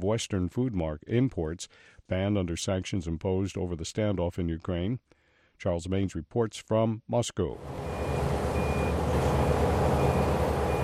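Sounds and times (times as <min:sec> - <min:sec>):
speech: 0:00.0 - 0:07.9
bulldozer diesel engine rumbling: 0:07.6 - 0:10.8
bulldozer reversing alarm beeping: 0:07.7 - 0:10.8.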